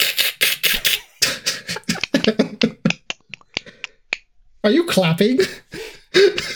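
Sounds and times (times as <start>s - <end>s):
person vocally imitating the Predator's clicking with mouth clicks: 0.0s - 4.3s
laughter: 0.7s - 4.3s, 5.2s - 6.5s
speech: 4.7s - 6.5s.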